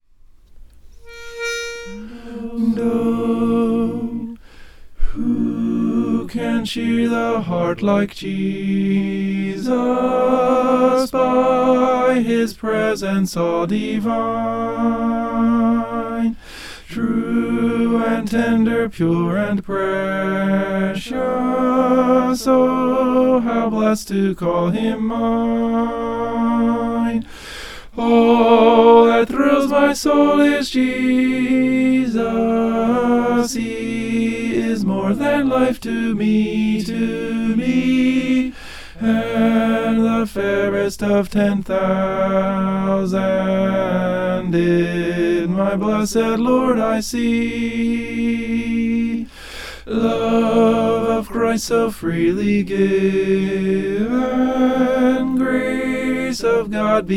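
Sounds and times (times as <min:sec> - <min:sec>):
tenor singing: 0:01.0 - 0:04.4, 0:05.0 - 0:27.3, 0:27.9 - 0:57.1.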